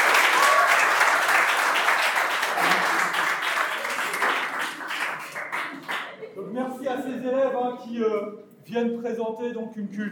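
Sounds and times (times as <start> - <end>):
audience applause: 0.0 - 6.2
speech: 7.2 - 10.1.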